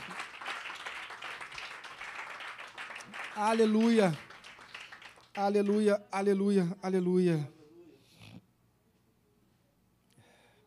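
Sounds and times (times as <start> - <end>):
audience applause: 0.0 - 5.9
speech: 3.4 - 4.3, 5.4 - 7.6.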